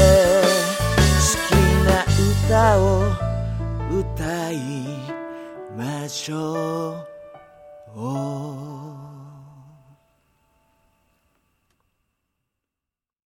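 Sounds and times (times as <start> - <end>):
vocals: 0.0 - 10.2.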